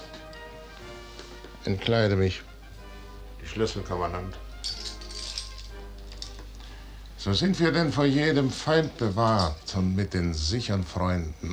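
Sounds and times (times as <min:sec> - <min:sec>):
speech: 0:01.6 - 0:02.5, 0:03.5 - 0:04.4, 0:07.2 - 0:11.5
gold chain snapping and falling: 0:04.6 - 0:06.4.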